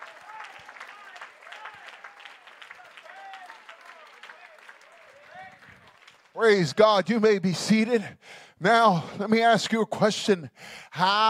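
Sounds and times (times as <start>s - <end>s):
audience clapping hands: 0.0s - 7.1s
speech: 6.4s - 11.2s.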